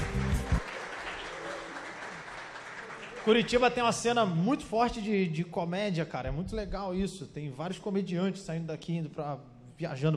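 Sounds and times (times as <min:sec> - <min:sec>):
audience applause for comedians: 0:00.0 - 0:04.0
speech: 0:03.2 - 0:10.1.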